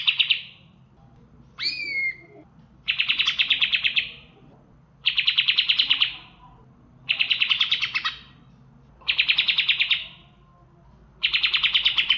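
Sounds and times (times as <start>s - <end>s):
leafbird singing with mimicry of bar-winged prinia calls: 0.0s - 0.6s, 1.6s - 4.4s, 5.0s - 6.4s, 7.1s - 8.4s, 9.0s - 10.3s, 11.2s - 12.1s.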